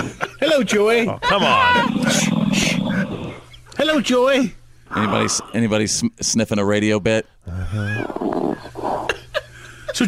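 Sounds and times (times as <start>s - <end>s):
speech: 0.4s - 2.7s, 3.8s - 8.8s
person faking a snore: 1.7s - 3.4s, 7.5s - 9.2s.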